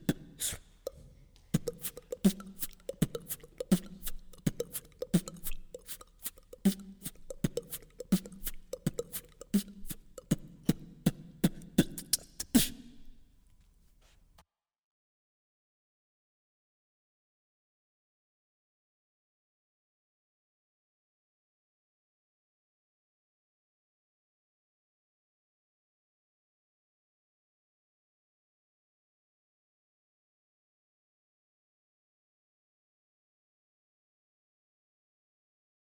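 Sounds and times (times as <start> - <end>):
beatbox: 0.0 - 13.4.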